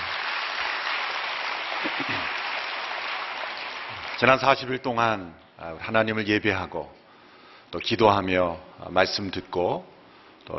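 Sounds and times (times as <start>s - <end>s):
audience applauding: 0.0s - 4.6s
speech: 4.2s - 7.0s, 7.7s - 9.9s.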